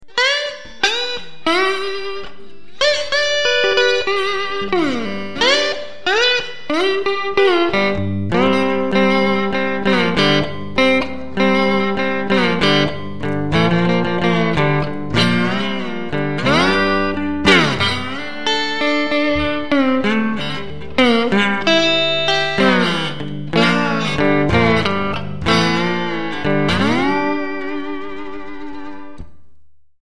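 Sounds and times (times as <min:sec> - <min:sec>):
slide guitar blues: 0:00.0 - 0:29.3.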